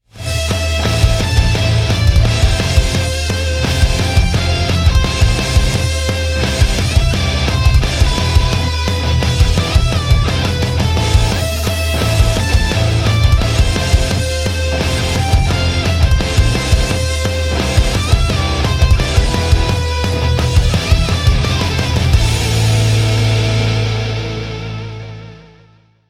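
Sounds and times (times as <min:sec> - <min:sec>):
outro music riff: 0:00.2 - 0:25.8.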